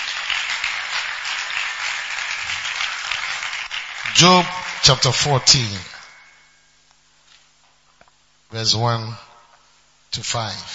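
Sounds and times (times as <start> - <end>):
crowd clapping: 0.0 - 6.4
speech: 4.2 - 5.9, 8.5 - 9.3, 10.1 - 10.7.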